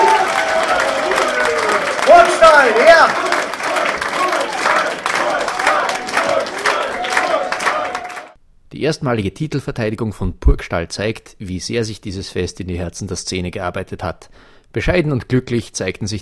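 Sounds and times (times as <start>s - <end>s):
crowd applause and cheering: 0.0s - 8.4s
speech: 8.8s - 16.2s.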